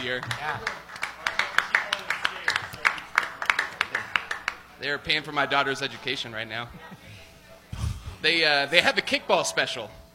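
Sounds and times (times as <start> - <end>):
speech: 0.0 - 0.8, 4.8 - 7.0, 8.2 - 10.0
audience round of applause: 0.0 - 4.7.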